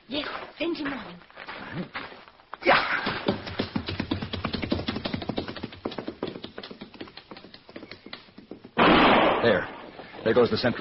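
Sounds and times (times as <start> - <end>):
speech: 0.1 - 2.0, 10.3 - 10.8
horses stampeding: 2.7 - 8.8.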